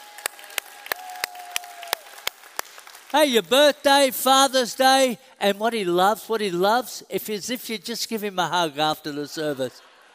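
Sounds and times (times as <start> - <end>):
audience clapping: 0.0 - 3.7
speech: 3.1 - 9.9.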